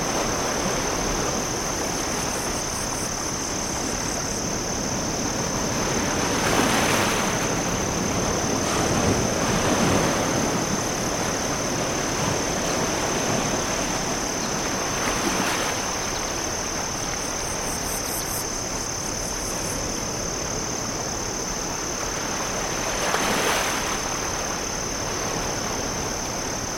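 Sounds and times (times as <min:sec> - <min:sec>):
crickets chirping: 0:00.0 - 0:26.7
rushing surf: 0:00.0 - 0:26.7.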